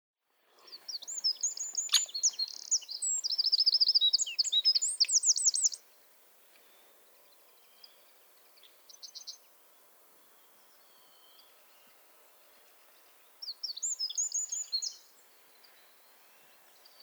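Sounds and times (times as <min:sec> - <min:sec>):
Eurasian wren singing: 0:00.7 - 0:05.8, 0:13.4 - 0:15.1.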